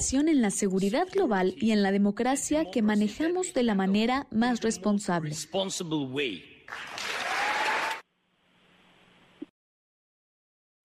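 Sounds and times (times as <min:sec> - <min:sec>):
speech: 0:00.0 - 0:06.9
dense clapping applause in the Capitol: 0:06.7 - 0:08.0.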